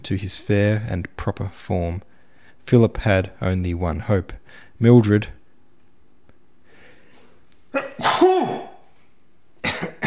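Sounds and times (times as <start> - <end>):
speech: 0.1 - 5.4
human sneeze: 7.7 - 8.9, 9.6 - 10.0.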